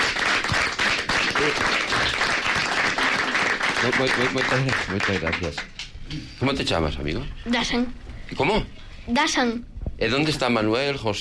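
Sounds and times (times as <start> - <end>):
audience applause: 0.0 - 5.8
speech: 1.4 - 2.2, 3.8 - 11.1.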